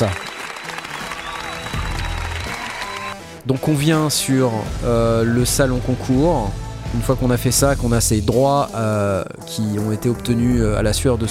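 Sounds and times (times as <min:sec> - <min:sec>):
speech: 0:00.0 - 0:00.2, 0:03.4 - 0:11.3
audience applause: 0:00.0 - 0:03.2.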